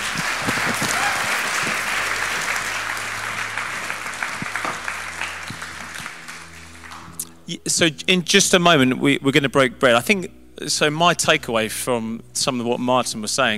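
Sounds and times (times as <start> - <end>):
audience applause: 0.0 - 7.3
speech: 7.5 - 13.5.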